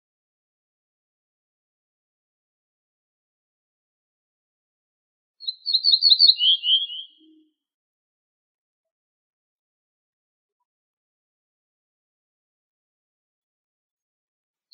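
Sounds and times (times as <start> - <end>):
ortolan bunting singing: 5.7 - 7.5.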